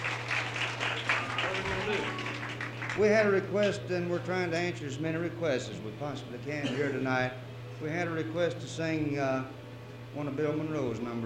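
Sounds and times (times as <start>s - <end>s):
audience applause at a convention stage show: 0.0s - 3.4s
speech: 3.0s - 11.2s.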